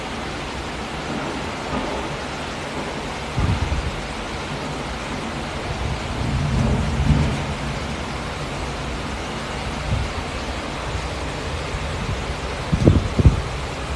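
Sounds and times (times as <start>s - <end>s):
heavy rain: 0.0s - 13.9s
thunder: 1.0s - 9.0s, 11.7s - 13.9s.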